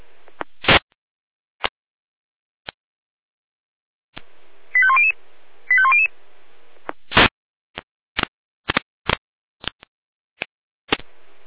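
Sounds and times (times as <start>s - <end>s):
fire brigade radio alerting tones: 4.8s - 6.1s
radio clicks and static bursts: 6.8s - 9.9s.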